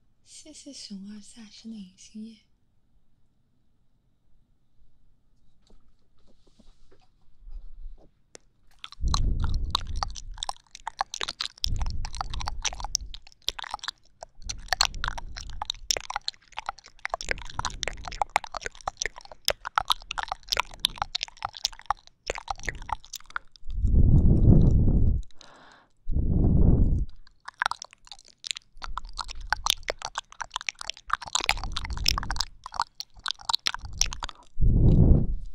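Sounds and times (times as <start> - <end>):
speech: 0.3 - 2.5
wet ASMR mouth clicks, smacks and chewing: 8.4 - 35.5
rumbling bursts: 23.7 - 25.3, 26.1 - 27.2, 34.6 - 35.5.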